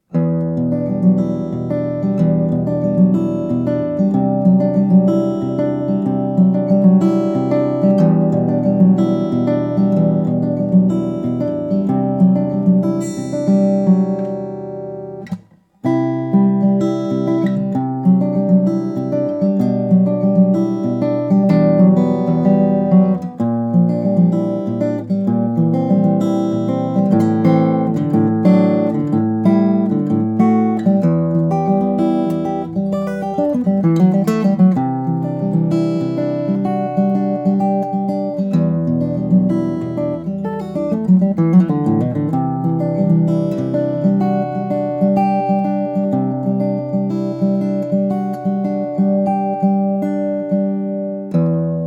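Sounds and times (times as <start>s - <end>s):
Emerald X20 Artisan Series Woody Amber steel string flattop guitar: 0.0s - 51.8s.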